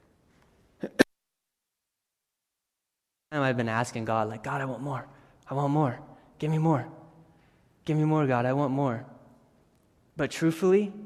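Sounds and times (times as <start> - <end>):
sharp coughs: 0.8 - 1.1
speech: 3.3 - 7.0, 7.9 - 9.1, 10.2 - 11.0.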